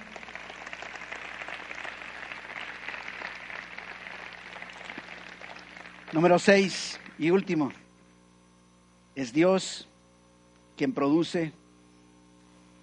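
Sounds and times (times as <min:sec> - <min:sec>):
audience applause: 0:00.0 - 0:07.6
speech: 0:06.1 - 0:07.8, 0:09.2 - 0:09.9, 0:10.8 - 0:11.6.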